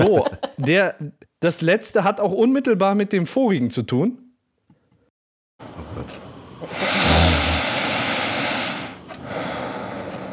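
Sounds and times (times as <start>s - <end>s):
laughter: 0.0s - 0.9s
speech: 0.0s - 4.2s
rasping snore with low buzzing rattle: 6.7s - 9.0s.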